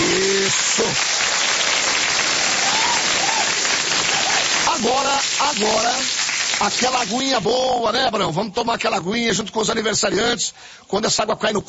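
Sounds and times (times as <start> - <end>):
applause for birthday celebrants: 0.0 - 7.4
speech: 5.5 - 11.6.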